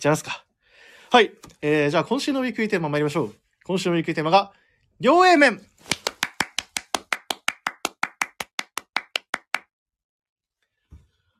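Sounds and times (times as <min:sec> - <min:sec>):
speech: 0:00.0 - 0:00.4, 0:01.1 - 0:06.0
one person clapping: 0:05.8 - 0:09.7.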